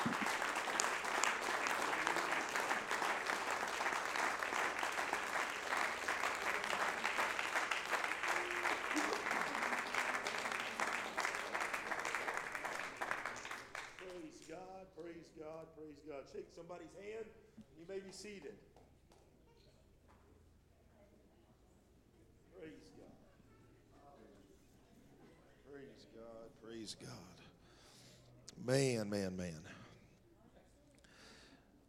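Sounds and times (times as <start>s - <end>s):
audience clapping: 0.0s - 14.5s
speech: 16.2s - 17.3s, 17.9s - 18.7s, 28.7s - 29.7s.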